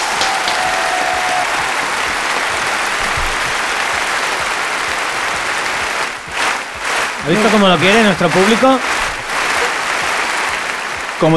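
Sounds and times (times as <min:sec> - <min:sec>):
studio audience applause: 0:00.0 - 0:11.3
speech: 0:07.3 - 0:09.1, 0:11.2 - 0:11.3.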